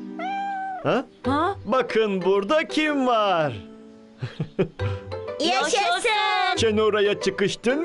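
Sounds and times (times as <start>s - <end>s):
cat meowing: 0.1s - 1.1s
speech: 0.9s - 1.1s, 1.8s - 3.7s, 4.3s - 7.8s.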